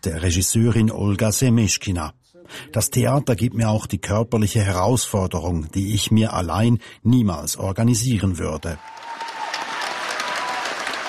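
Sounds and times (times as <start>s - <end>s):
speech: 0.0s - 9.0s
theatre audience standing ovation for a veterans' theatre company: 8.8s - 11.0s.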